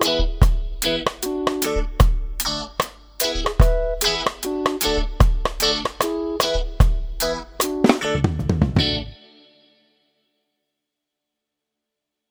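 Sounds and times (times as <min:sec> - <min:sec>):
reggae music with bass playalong: 0:00.0 - 0:09.2.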